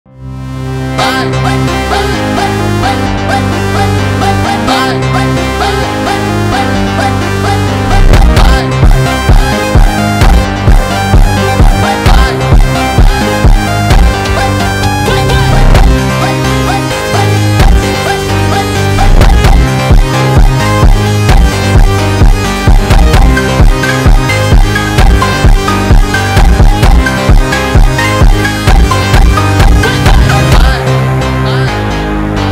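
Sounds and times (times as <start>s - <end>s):
Brazilian phonk music: 0.2s - 32.5s.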